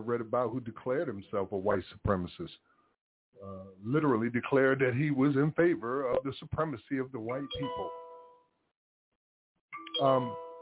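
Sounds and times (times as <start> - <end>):
speech: 0.0 - 2.7, 3.3 - 8.0, 10.0 - 10.4
phone text message notification chime: 9.8 - 10.5.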